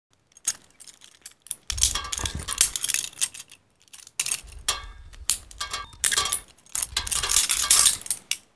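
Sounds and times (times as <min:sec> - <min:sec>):
shackle rattling: 0:00.1 - 0:08.5.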